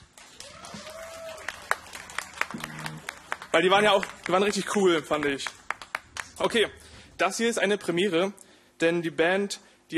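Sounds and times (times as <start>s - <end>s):
scattered audience applause: 0.0s - 6.5s
speech: 3.6s - 5.6s, 6.4s - 9.9s.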